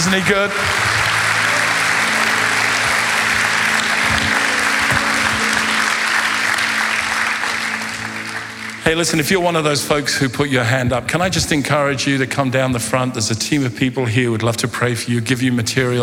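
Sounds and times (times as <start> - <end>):
church audience applause: 0.0 - 9.8
speech: 0.1 - 1.0, 8.8 - 16.0.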